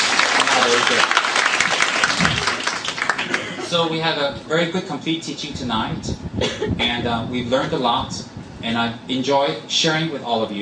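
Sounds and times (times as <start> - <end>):
audience applause: 0.0 - 3.7
speech: 0.7 - 1.2, 3.7 - 10.6.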